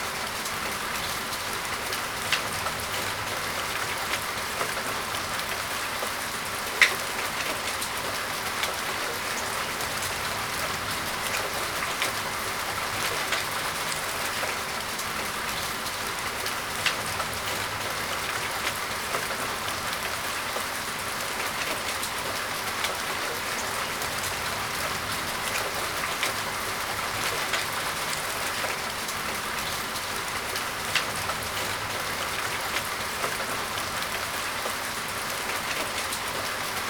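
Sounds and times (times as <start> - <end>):
soft rain on a window: 0.0 - 36.8.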